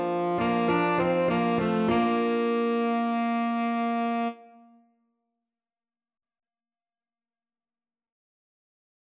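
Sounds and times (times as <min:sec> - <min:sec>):
tenor saxophone: 0:00.0 - 0:04.8.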